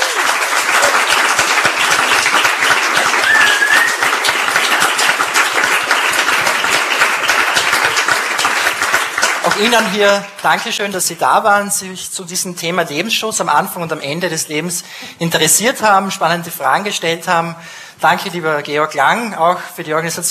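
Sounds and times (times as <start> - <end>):
audience applause: 0.0 - 10.3
speech: 9.6 - 20.3.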